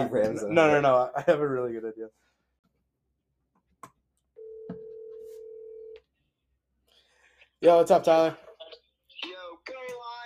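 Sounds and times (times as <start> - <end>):
speech: 0.0 - 2.3, 7.6 - 8.5
phone ringback tone: 4.4 - 6.0.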